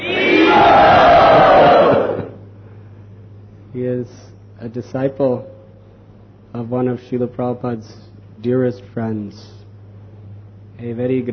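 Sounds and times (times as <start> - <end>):
crowd chanting in welcome: 0.0 - 2.4
speech: 4.0 - 5.6, 6.6 - 9.6, 10.8 - 11.3.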